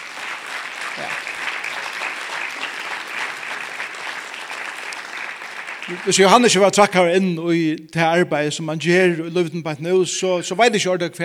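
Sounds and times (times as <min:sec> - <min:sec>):
applause for a person being thanked: 0:00.0 - 0:06.9
speech: 0:01.0 - 0:01.3, 0:05.9 - 0:11.2.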